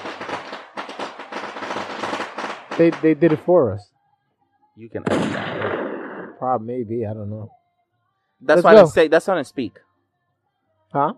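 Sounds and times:
gunshot sound effect: 0.0s - 3.6s, 5.0s - 6.5s
speech: 2.8s - 4.0s, 4.8s - 7.6s, 8.4s - 9.9s, 10.9s - 11.1s.

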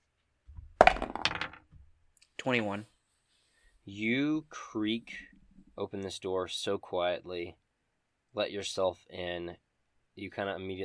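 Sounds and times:
dice rolling across a hard surface: 0.8s - 1.7s
speech: 2.4s - 2.9s, 3.9s - 7.6s, 8.4s - 9.6s, 10.2s - 10.8s.

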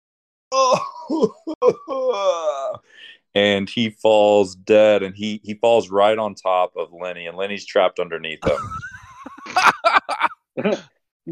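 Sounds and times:
man's voice imitating a monster's dying scream: 0.5s - 2.8s
speech: 0.5s - 8.9s, 9.5s - 11.3s
laughter: 8.4s - 10.9s.

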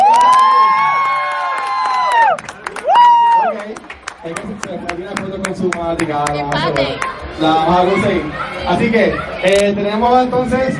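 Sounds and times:
audience cheering: 0.0s - 5.2s
audience clapping: 0.0s - 7.2s
speech: 5.9s - 10.7s.

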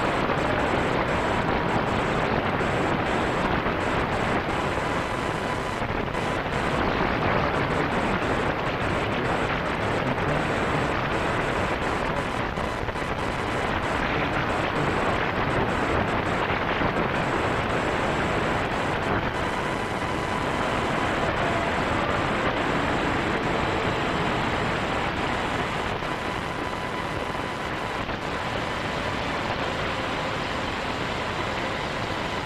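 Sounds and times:
radio interference hiss and crackle: 0.0s - 32.4s.

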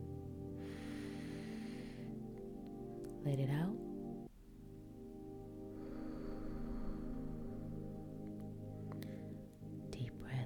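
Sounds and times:
low tonal background: 0.0s - 10.4s
deep breath in during a guided breathing exercise: 0.6s - 2.2s, 5.7s - 9.5s
speech: 3.2s - 3.9s.

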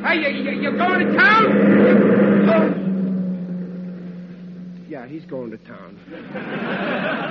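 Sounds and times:
car passing on road: 0.0s - 7.2s
low hum: 0.0s - 7.2s
speech: 0.1s - 2.9s, 4.9s - 7.2s
laughter: 6.0s - 7.2s.

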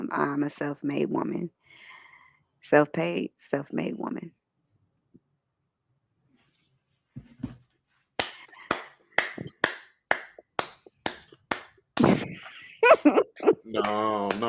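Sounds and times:
speech: 0.1s - 1.6s, 2.6s - 4.3s, 12.3s - 14.4s
audience clapping: 8.2s - 12.2s, 13.8s - 14.4s
laughter: 12.0s - 14.4s.

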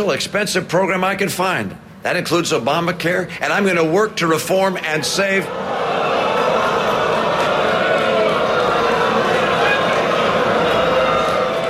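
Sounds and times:
speech: 0.0s - 5.8s
large audience booing: 4.9s - 11.6s.

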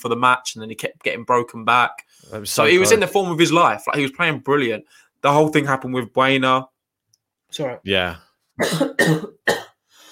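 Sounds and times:
speech: 0.0s - 6.7s, 7.5s - 9.6s
person coughing after something went down wrong: 8.6s - 9.8s.

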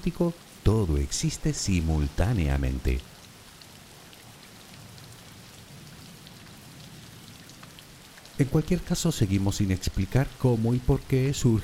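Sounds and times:
speech: 0.0s - 3.1s, 8.4s - 11.6s
background rain: 0.0s - 11.6s.

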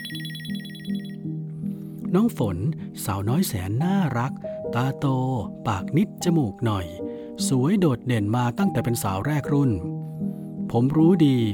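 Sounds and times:
mobile phone ringtone: 0.0s - 1.3s
speech: 2.1s - 9.9s, 10.7s - 11.5s.

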